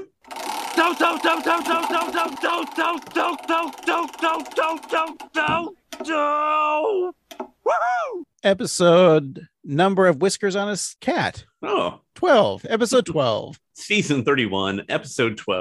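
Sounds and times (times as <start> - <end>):
spinning prize wheel clicking: 0.0 - 6.2
speech: 0.8 - 15.6.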